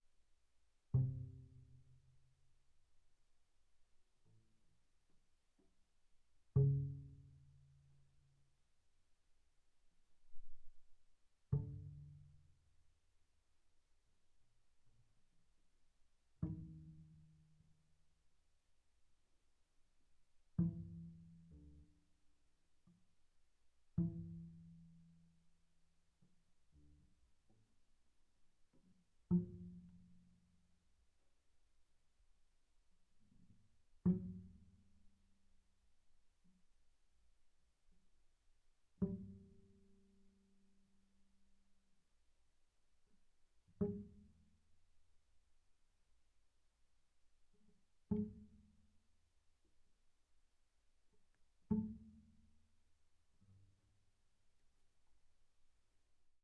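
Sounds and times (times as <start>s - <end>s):
double bass pizzicato on the A string: 0.9s - 2.4s, 6.5s - 8.4s, 10.2s - 12.8s, 16.3s - 17.8s, 20.5s - 22.2s, 23.9s - 25.5s, 26.2s - 27.7s, 28.7s - 30.6s, 33.2s - 35.2s, 38.9s - 40.7s, 43.8s - 44.6s, 47.6s - 49.0s, 51.6s - 52.7s.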